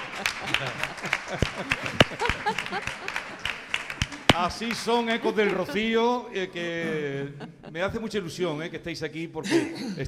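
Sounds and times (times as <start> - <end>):
crowd applauding: 0.0 - 5.9
laughter: 0.0 - 8.4
speech: 0.4 - 3.2, 4.4 - 10.0.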